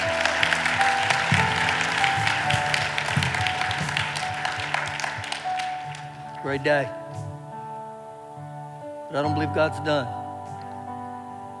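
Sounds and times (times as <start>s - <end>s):
audience clapping: 0.0s - 6.9s
speech: 6.5s - 7.0s, 9.1s - 10.2s.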